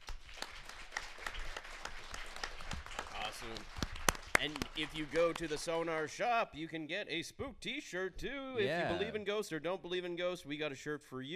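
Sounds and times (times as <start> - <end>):
audience round of applause: 0.0 - 5.9
speech: 4.4 - 11.3.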